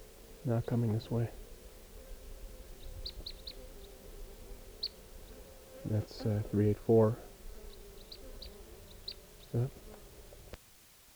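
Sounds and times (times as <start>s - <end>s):
type 2 crossbill calls: 0.0s - 10.6s
speech: 0.4s - 1.4s, 5.9s - 7.3s, 9.5s - 9.8s.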